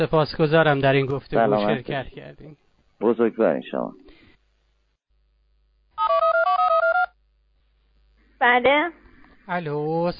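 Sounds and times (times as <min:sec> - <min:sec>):
speech: 0:00.0 - 0:04.1, 0:08.4 - 0:10.1
two-tone electronic telephone ringing: 0:06.0 - 0:07.2.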